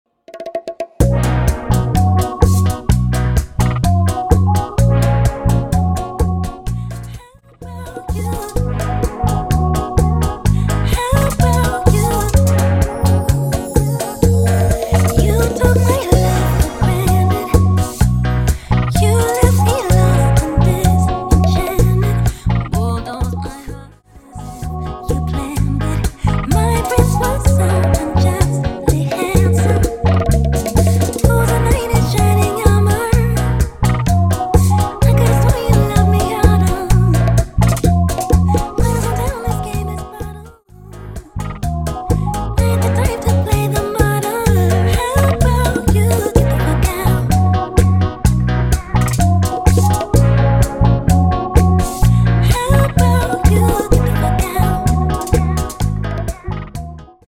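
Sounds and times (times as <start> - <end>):
bachata music at 127 BPM: 0.3 - 57.2.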